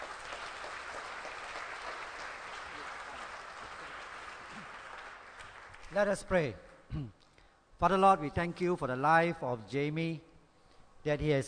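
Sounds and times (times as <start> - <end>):
audience applause welcoming a speaker at a Christian mission gathering: 0.0 - 5.9
speech: 5.9 - 7.2, 7.8 - 10.3, 11.0 - 11.4.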